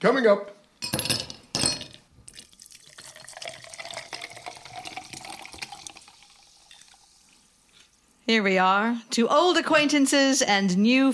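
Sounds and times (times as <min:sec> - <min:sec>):
speech: 0:00.0 - 0:00.6, 0:08.3 - 0:11.1
sparkling mineral water poured into a glass: 0:02.2 - 0:08.0.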